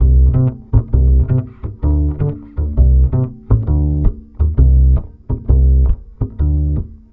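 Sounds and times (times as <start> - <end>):
bass line in Balkan traditional style: 0.0 - 7.1.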